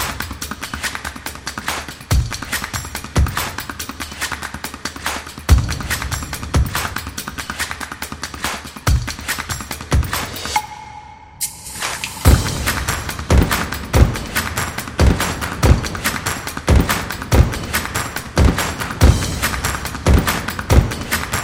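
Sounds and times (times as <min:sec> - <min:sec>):
claps: 0:00.0 - 0:10.6, 0:11.7 - 0:21.4
drums: 0:00.0 - 0:21.4.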